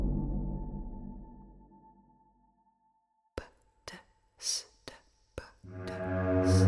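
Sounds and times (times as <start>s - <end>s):
hymn: 5.7s - 6.6s.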